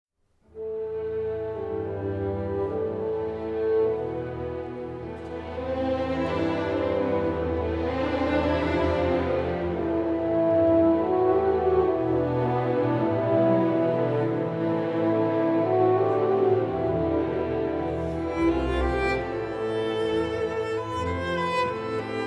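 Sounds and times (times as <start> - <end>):
cello concerto: 0.5 - 22.2.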